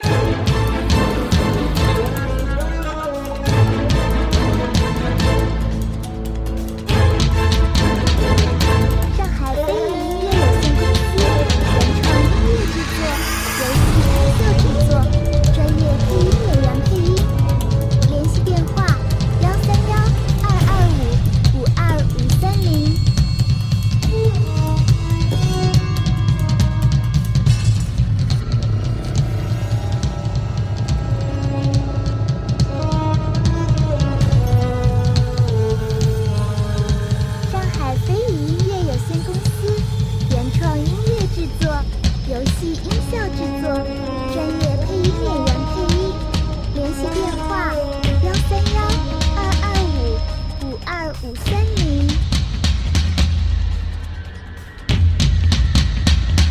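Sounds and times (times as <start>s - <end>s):
dangerous tense music: 0.0s - 56.4s.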